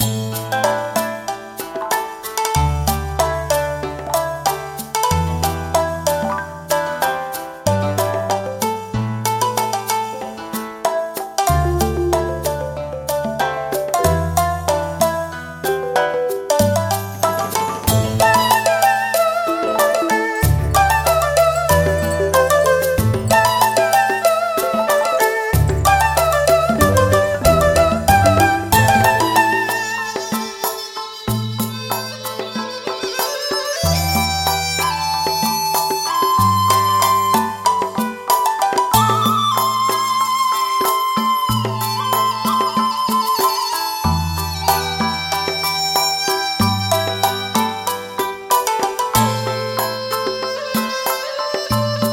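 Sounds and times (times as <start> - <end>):
music: 0.0 - 52.1.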